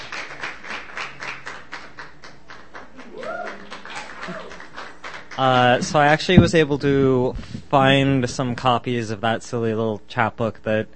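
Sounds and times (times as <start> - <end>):
audience at a poetry reading in Bellingham applauding a poet: 0.0 - 6.2
speech: 5.4 - 10.9.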